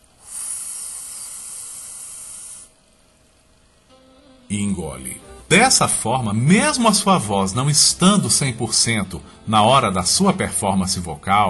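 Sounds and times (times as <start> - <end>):
sucking in air through pursed lips: 0.1 - 2.8
speech: 4.5 - 11.4.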